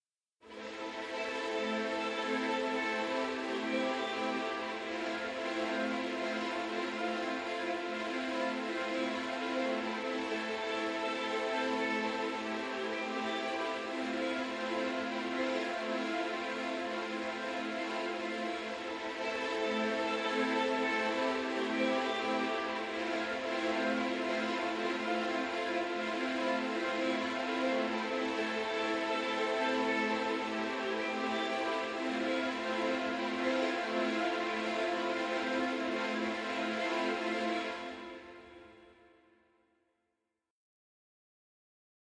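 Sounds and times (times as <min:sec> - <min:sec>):
strings: 0:00.5 - 0:39.1.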